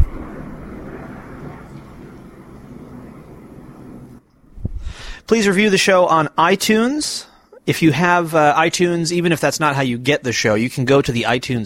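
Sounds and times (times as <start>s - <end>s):
airplane flying overhead: 0.0s - 5.3s
speech: 5.3s - 11.6s.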